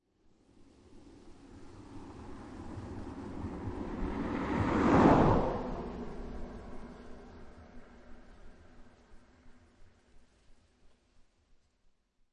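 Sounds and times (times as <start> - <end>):
car driving by a country road: 1.6 - 9.0.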